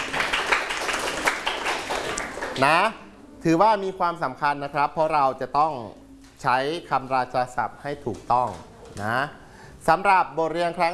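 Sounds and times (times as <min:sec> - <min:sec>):
students in a classroom clapping for a classmate: 0:00.0 - 0:02.9
speech: 0:02.6 - 0:10.9.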